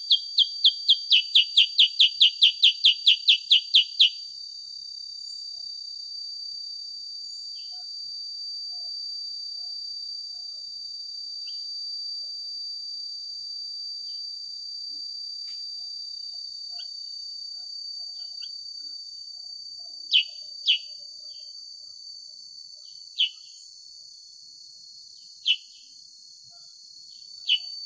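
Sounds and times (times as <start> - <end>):
sooty-headed bulbul song of sharp downslurred chirps: 0.0 - 4.2, 20.1 - 21.5, 22.8 - 23.6, 25.4 - 25.9, 27.1 - 27.8.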